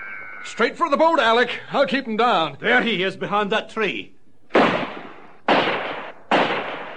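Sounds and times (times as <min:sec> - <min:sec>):
speech: 0:00.4 - 0:04.2
gunshot: 0:04.5 - 0:06.9.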